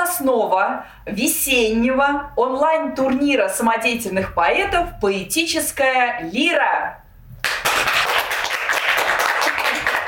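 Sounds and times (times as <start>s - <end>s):
speech: 0.2s - 7.0s
audience applause: 7.4s - 10.0s.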